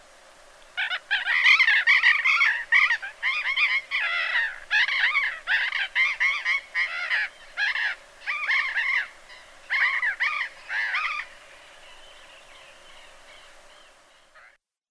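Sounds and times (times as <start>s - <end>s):
burrowing parrot Cyanoliseus patagonus harsh screeching calls: 0.8s - 11.3s.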